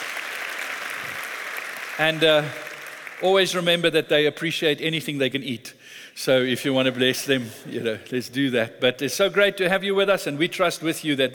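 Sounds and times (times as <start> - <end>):
welcoming round of applause: 0.0 - 3.2
speech: 2.0 - 2.6, 3.2 - 11.3.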